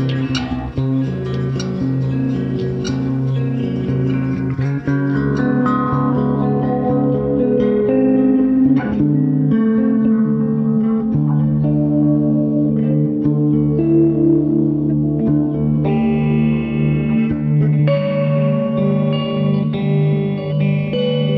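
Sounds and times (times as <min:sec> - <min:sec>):
eight string ambience: 0:00.0 - 0:21.3.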